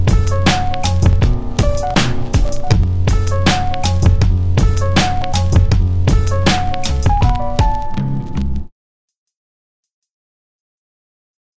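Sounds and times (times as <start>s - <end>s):
music beat: 0.0s - 8.7s.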